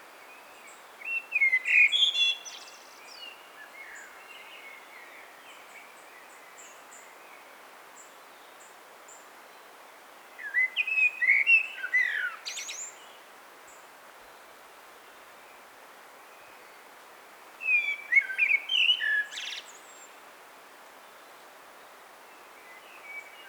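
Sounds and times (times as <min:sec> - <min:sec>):
common blackbird song: 0:01.0 - 0:04.2, 0:10.4 - 0:13.0, 0:17.6 - 0:19.7.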